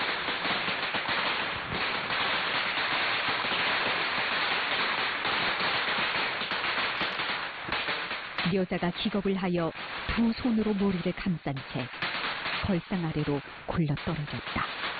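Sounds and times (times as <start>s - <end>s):
thunderous gunfire: 0.0s - 14.9s
speech: 8.5s - 12.0s, 12.6s - 14.9s.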